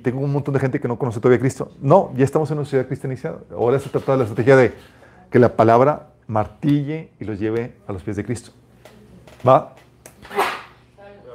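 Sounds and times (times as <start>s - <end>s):
speech: 0.0s - 8.6s, 9.4s - 10.4s
sneeze: 10.2s - 10.8s.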